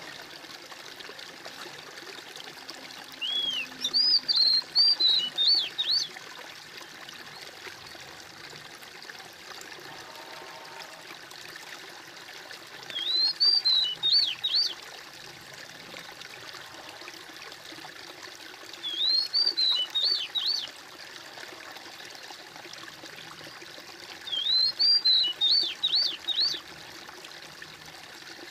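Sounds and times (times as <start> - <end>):
bird whistled song: 3.2 - 6.1, 12.9 - 14.8, 18.8 - 20.7, 24.3 - 26.6.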